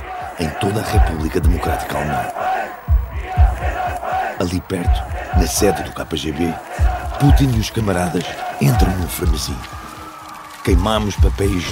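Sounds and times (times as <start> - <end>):
crowd chanting slogans at protest: 0.0 - 10.6
speech: 0.4 - 2.5, 4.4 - 9.8, 10.6 - 11.6.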